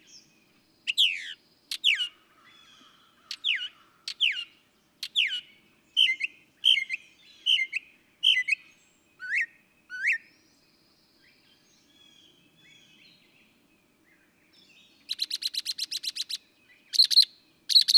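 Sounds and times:
Northern mockingbird singing: 0:00.9 - 0:10.2, 0:15.0 - 0:17.9.

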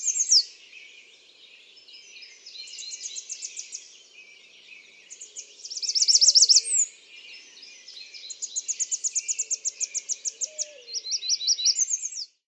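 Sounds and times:
American redstart: 0:00.0 - 0:12.4.

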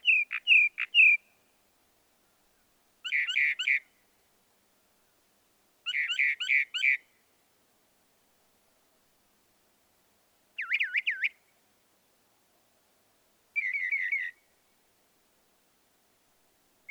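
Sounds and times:
Northern mockingbird song: 0:00.0 - 0:01.2, 0:03.0 - 0:03.8, 0:10.6 - 0:11.4, 0:13.6 - 0:14.4
faint hiss: 0:00.0 - 0:16.8.

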